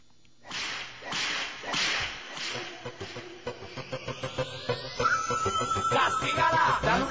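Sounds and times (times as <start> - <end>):
loud sharp whip cracks: 0.4 - 3.2
upbeat dance song with rhythmic pulses and rising synth sweep: 0.6 - 7.0.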